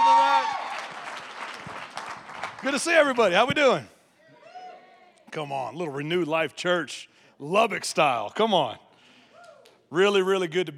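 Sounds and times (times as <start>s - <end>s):
audience applause: 0.0s - 3.3s
speech: 2.6s - 3.9s, 5.3s - 8.8s, 9.9s - 10.7s.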